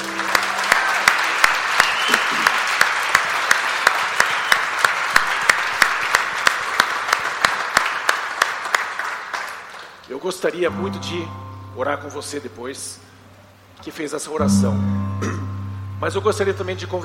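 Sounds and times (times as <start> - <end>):
audience applause: 0.0 - 10.1
speech: 10.2 - 13.1, 13.8 - 15.3, 16.0 - 17.0.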